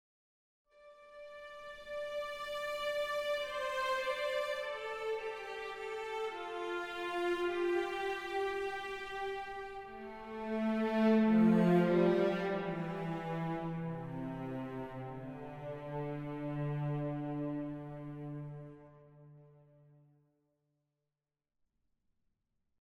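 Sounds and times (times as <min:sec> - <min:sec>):
neutral travel music: 0:00.8 - 0:19.0.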